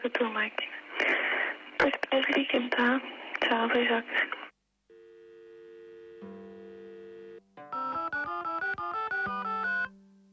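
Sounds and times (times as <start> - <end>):
speech: 0.0 - 1.1, 1.8 - 4.4
telephone tone after hanging up: 4.9 - 9.9.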